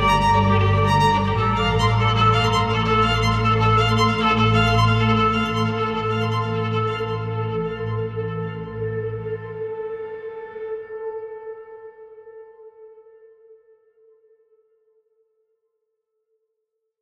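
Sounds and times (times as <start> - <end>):
solo violin piece: 0.0 - 9.8.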